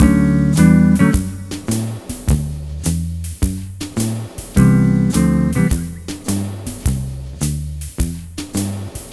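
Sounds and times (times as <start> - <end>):
multi guitar swing mix: 0.0 - 9.0.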